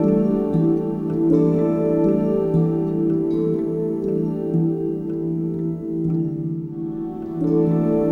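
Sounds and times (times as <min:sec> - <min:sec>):
pastoral music: 0:00.0 - 0:08.1.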